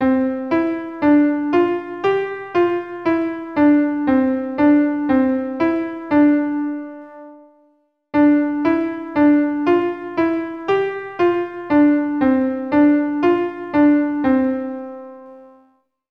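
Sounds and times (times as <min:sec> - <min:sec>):
piano: 0:00.0 - 0:15.8.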